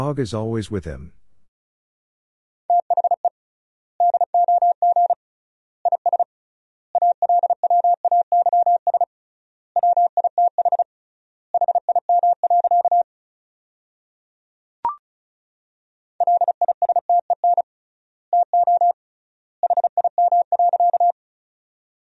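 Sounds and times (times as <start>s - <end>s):
speech: 0.0s - 1.2s
Morse code tones at 35 wpm: 2.7s - 3.3s, 4.0s - 5.2s, 5.9s - 6.3s, 7.0s - 9.1s, 9.8s - 10.8s, 11.6s - 13.0s, 16.2s - 17.6s, 18.4s - 19.0s, 19.6s - 21.1s.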